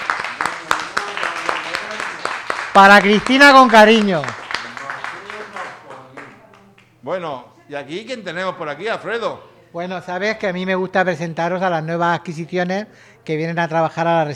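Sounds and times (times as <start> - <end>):
group applause: 0.0 - 6.9
speech: 2.8 - 4.4, 7.0 - 14.3.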